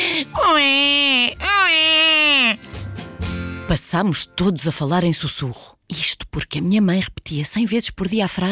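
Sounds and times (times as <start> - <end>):
baby crying: 0.4 - 2.6
speech: 3.7 - 8.4.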